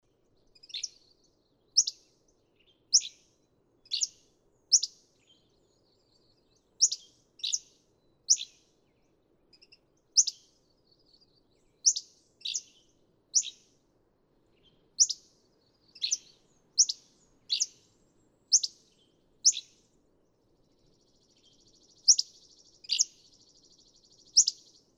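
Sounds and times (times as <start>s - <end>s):
Hammond's flycatcher calling with sharp chips and burry notes: 1.8s - 2.0s, 2.9s - 3.2s, 3.9s - 5.0s, 6.8s - 7.7s, 8.3s - 8.6s, 9.6s - 10.5s, 11.8s - 13.7s, 14.9s - 15.3s, 15.9s - 19.8s, 20.9s - 24.9s.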